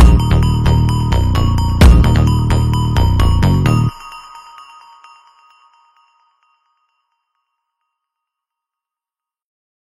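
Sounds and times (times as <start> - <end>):
Brazilian funk music: 0.0 - 3.9.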